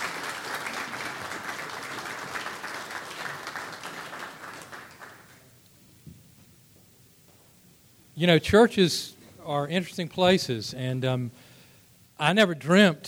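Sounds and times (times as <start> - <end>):
audience applause: 0.0 - 5.5
speech: 8.2 - 11.5, 12.2 - 13.0.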